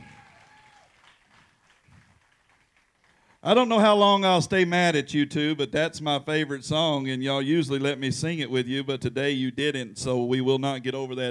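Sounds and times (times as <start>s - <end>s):
round of applause: 0.0s - 3.6s
speech: 3.4s - 11.3s.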